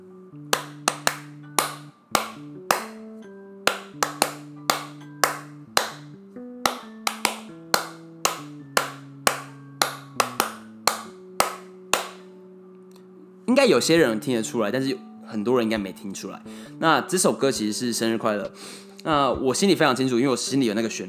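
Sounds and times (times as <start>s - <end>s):
hands clapping the rhythm of a song: 0.5s - 12.3s
speech: 13.6s - 21.0s.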